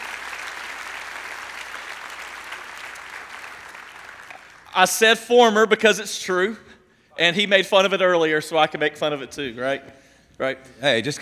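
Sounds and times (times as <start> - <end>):
audience applause welcoming a guest at a Day of Champions event: 0.0 - 4.8
speech: 4.8 - 11.2.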